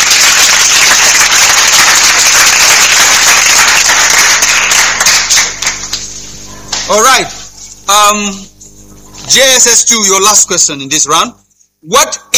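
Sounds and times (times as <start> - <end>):
audience round of applause: 0.0 - 6.1
speech: 6.9 - 8.5, 9.3 - 12.3.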